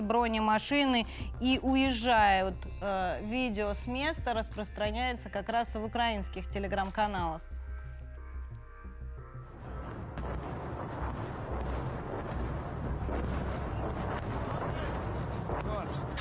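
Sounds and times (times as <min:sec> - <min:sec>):
speech: 0:00.1 - 0:07.5
artillery fire rumbling in a city: 0:09.6 - 0:16.1.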